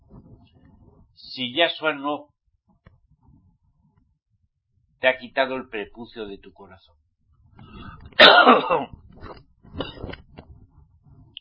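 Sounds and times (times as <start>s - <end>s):
speech: 1.3s - 2.3s, 5.0s - 7.0s, 8.2s - 10.1s
person coughing and clearing throat irritated by the wind: 8.2s - 10.2s.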